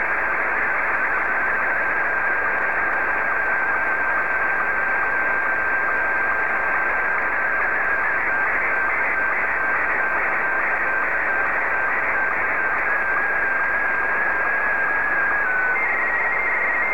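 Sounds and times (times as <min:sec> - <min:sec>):
slow-scan television signal: 0:00.0 - 0:16.9.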